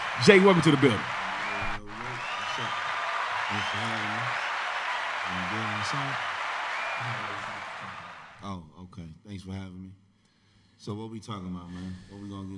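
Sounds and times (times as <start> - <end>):
applause sound effect: 0.0 - 8.4
speech: 0.2 - 1.2, 3.5 - 4.4, 5.3 - 6.3, 7.0 - 10.0, 10.8 - 12.5.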